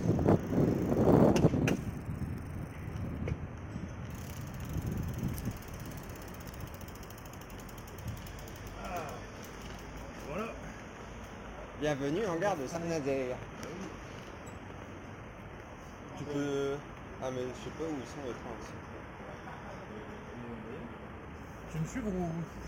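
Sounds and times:
bicycle freewheel ticking and clicking: 0:00.0 - 0:03.3, 0:04.0 - 0:10.3
cycling peloton whooshing past, tyres and chains: 0:00.0 - 0:10.9
speech: 0:11.8 - 0:13.5, 0:16.3 - 0:19.1, 0:21.7 - 0:22.6.

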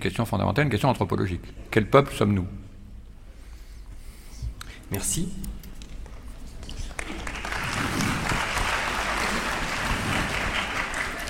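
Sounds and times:
speech: 0:00.0 - 0:02.6, 0:04.9 - 0:05.6
audience applauding: 0:06.9 - 0:11.2.

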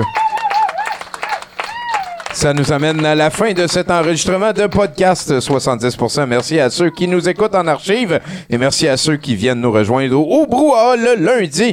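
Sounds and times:
voices whooping and cheering: 0:00.0 - 0:02.5
audience applause for guest: 0:00.0 - 0:05.7
speech: 0:02.4 - 0:11.7.

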